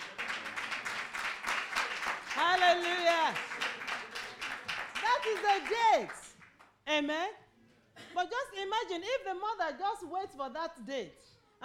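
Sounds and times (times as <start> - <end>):
audience clapping: 0.0 - 6.8
speech: 5.2 - 6.2, 6.9 - 7.4, 8.2 - 11.3.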